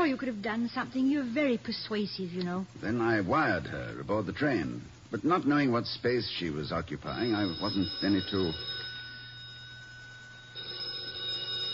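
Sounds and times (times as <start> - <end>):
speech: 0.1 - 8.8
telephone ringing: 7.0 - 11.7.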